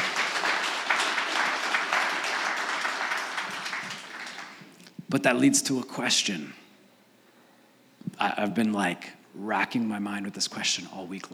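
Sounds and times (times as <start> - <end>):
audience applause: 0.0 - 4.7
speech: 5.1 - 6.6, 8.2 - 11.3.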